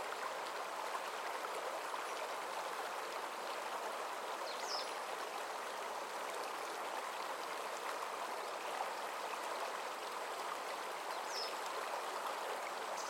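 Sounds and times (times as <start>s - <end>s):
stream murmuring on a summer morning: 0.0s - 13.0s.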